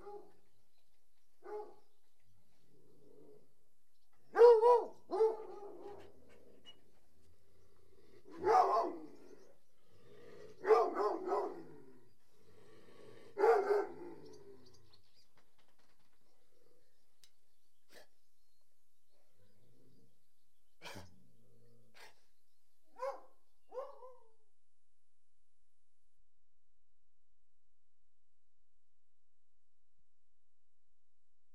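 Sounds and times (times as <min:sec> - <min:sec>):
dog barking: 0:00.0 - 0:00.4, 0:01.4 - 0:01.8, 0:04.3 - 0:06.1, 0:08.4 - 0:09.1, 0:10.6 - 0:11.7, 0:13.4 - 0:14.1, 0:23.0 - 0:24.4.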